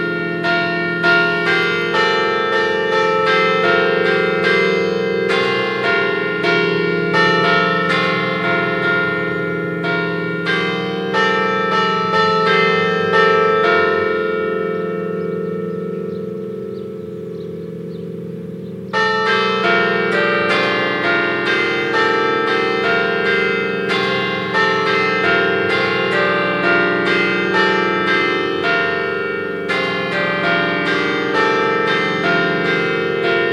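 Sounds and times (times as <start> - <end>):
carillon bells in Siviriez: 0.0 - 33.5.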